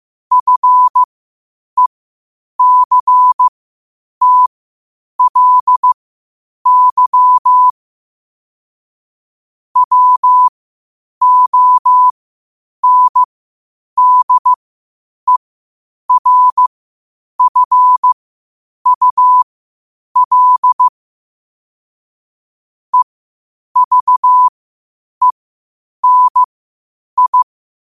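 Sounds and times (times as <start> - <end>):
morse code at 5 wpm: 0.3 - 1.1, 2.6 - 3.5, 4.2 - 4.5, 5.2 - 6.0, 6.7 - 7.7, 9.8 - 10.5, 11.2 - 12.1, 12.8 - 13.3, 14.0 - 14.6, 16.1 - 16.7, 17.4 - 18.2, 18.9 - 19.5, 20.2 - 20.9, 23.8 - 24.5, 26.0 - 26.5, 27.2 - 27.5.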